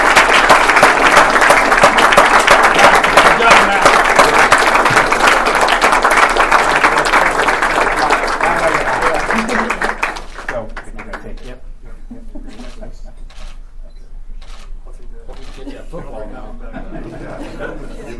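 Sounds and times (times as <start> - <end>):
audience applause: 0.0 - 11.3
laughter: 8.4 - 10.0, 11.9 - 13.3, 15.6 - 18.1.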